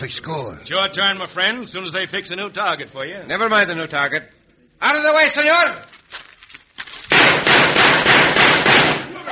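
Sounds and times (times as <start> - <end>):
speech: 0.0 - 6.2
gunshots fired at a target during a shooting contest: 7.1 - 9.1.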